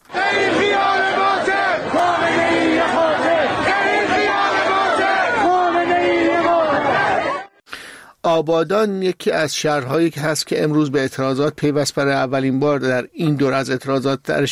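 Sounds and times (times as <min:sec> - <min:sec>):
protest crowd chanting slogans in street: 0:00.1 - 0:07.6
speech: 0:08.4 - 0:14.5.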